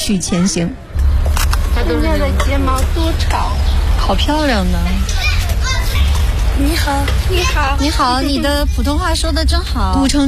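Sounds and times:
children chattering and calling out in old town lanes: 0.0 - 10.2
speech: 0.1 - 0.9, 1.8 - 5.3, 6.6 - 10.2
low rumble: 0.3 - 10.2.

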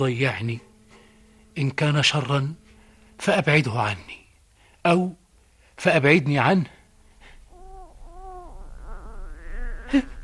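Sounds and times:
speech: 0.0 - 0.7, 1.6 - 2.6, 3.2 - 4.2, 4.8 - 5.2, 5.8 - 6.8, 9.9 - 10.1
baby crying: 7.5 - 10.2.

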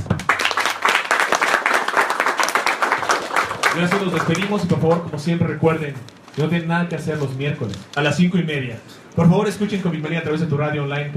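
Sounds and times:
crowd applauding at the end of a presentation of 145 images: 0.0 - 4.7
speech: 3.8 - 11.1.

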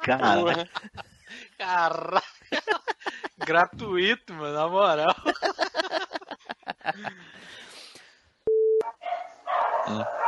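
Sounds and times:
laughter: 0.0 - 3.9, 5.0 - 7.6
speech: 0.0 - 6.1, 6.9 - 7.9, 9.0 - 10.2
dog barking: 8.8 - 10.2.

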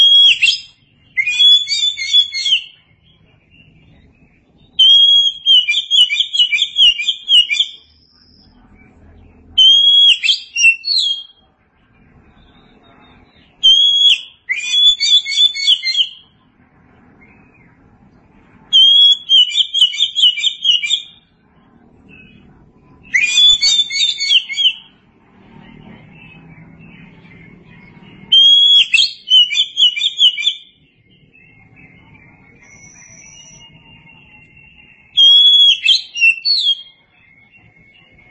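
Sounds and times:
Oriental magpie-robin singing: 0.0 - 11.5, 12.4 - 16.4, 18.7 - 21.3, 22.0 - 25.0, 25.7 - 38.3.

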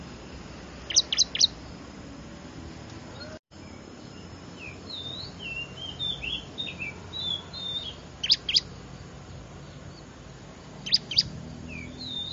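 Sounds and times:
bar-winged prinia lure call chirps and trills: 0.2 - 2.0, 2.6 - 12.3.

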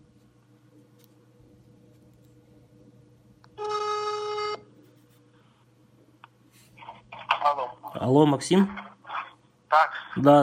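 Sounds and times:
phone ringback tone: 3.6 - 4.7
speech: 8.0 - 8.8, 9.7 - 10.4.

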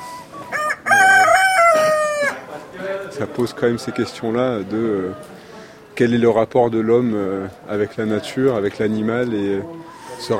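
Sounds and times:
chickens clucking: 0.0 - 6.0, 6.6 - 10.3
rooster crowing: 0.4 - 2.4
speech: 3.2 - 5.4, 6.0 - 10.3.

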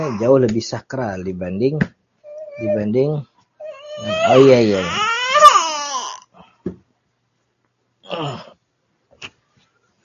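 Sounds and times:
speech: 0.0 - 2.0, 2.6 - 3.3, 4.0 - 5.1
young child crying: 3.6 - 6.3.

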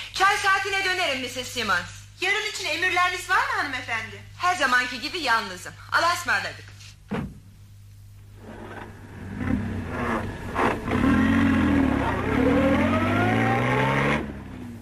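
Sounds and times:
speech: 0.3 - 7.2
car engine idling, revving and pulling away: 8.9 - 14.7.

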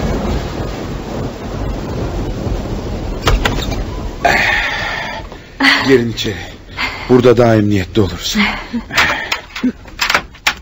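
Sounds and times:
rain outside: 0.0 - 10.6
steady hiss: 0.0 - 10.6
house door swinging shut with a dull thud: 3.2 - 3.9
speech: 5.8 - 6.5, 7.1 - 9.8
door lock clicking and rattling as it is turned: 8.9 - 10.6.

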